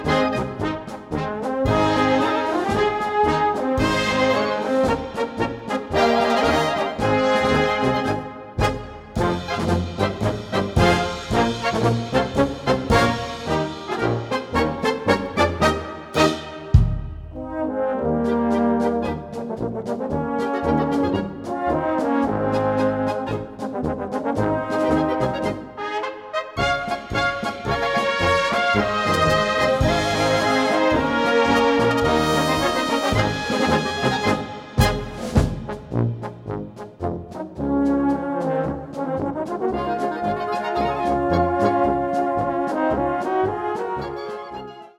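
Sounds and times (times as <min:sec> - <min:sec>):
polka music: 0:00.0 - 0:44.9.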